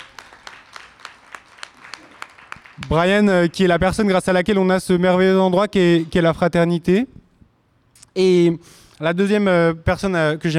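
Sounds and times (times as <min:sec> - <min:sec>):
audience applause: 0:00.0 - 0:03.6
speech: 0:02.8 - 0:07.2, 0:08.2 - 0:10.5.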